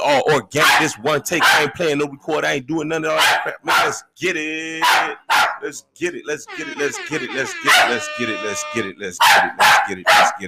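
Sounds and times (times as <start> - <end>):
speech: 0.0 - 10.4
dog Rusty barking: 0.6 - 1.8, 3.2 - 4.0, 4.8 - 5.6, 7.6 - 8.0, 9.2 - 10.4.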